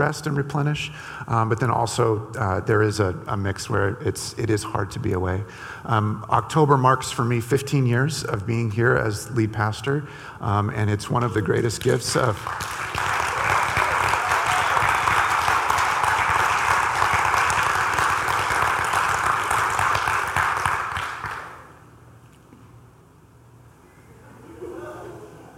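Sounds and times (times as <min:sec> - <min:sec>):
speech: 0:00.0 - 0:13.0
audience applauding: 0:12.1 - 0:21.7.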